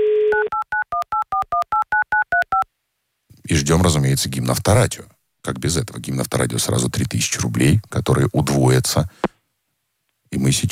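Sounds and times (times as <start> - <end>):
phone dial tone: 0.0 - 2.7
speech: 3.5 - 9.3, 10.3 - 10.6.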